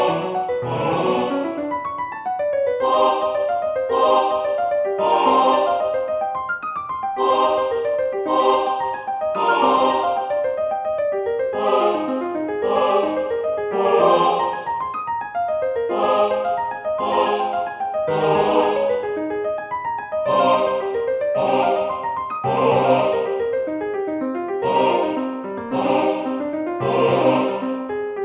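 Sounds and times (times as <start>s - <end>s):
SATB choir vocalise: 0.0s - 1.7s, 2.8s - 6.1s, 7.2s - 10.6s, 11.6s - 14.9s, 15.9s - 19.2s, 20.3s - 23.5s, 24.6s - 27.8s
piano: 0.0s - 28.2s.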